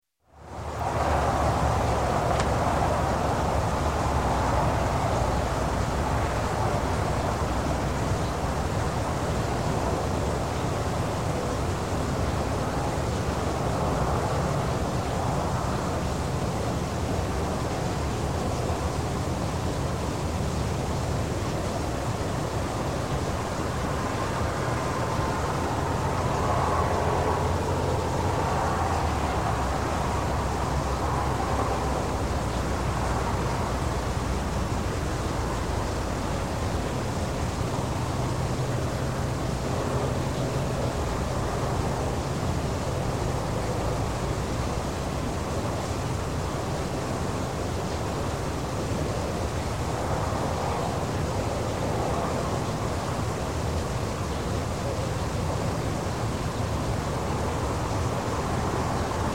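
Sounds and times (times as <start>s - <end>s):
residential night time ambience: 0.2s - 59.3s
traffic: 0.3s - 59.3s.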